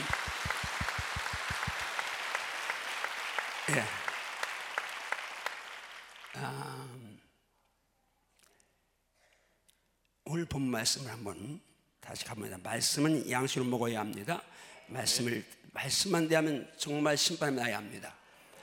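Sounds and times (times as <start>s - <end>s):
audience applause: 0.0s - 6.8s
speech: 3.7s - 4.0s, 6.4s - 7.2s, 10.3s - 18.2s.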